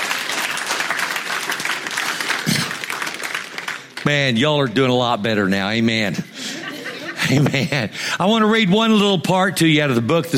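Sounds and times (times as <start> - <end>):
hand clapping: 0.0 - 4.1
speech: 4.0 - 6.5, 7.2 - 10.3
laughter: 6.1 - 8.2.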